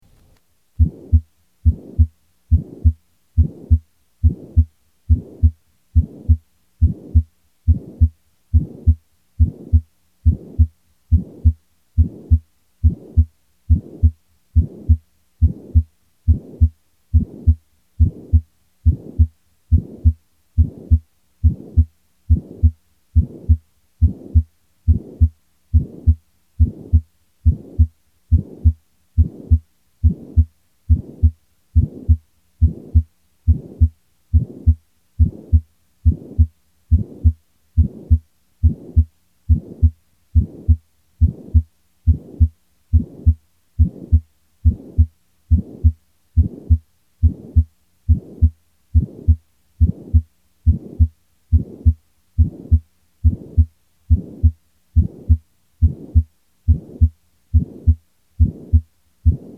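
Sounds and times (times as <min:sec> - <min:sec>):
systolic heart murmur over the pulmonary trunk: 0:00.8 - 0:59.5.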